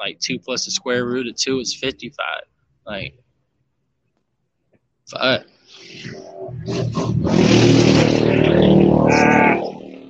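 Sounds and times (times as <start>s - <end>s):
speech: 0.0s - 3.2s, 5.1s - 9.6s
loud motorcycle passing outside: 6.2s - 10.0s.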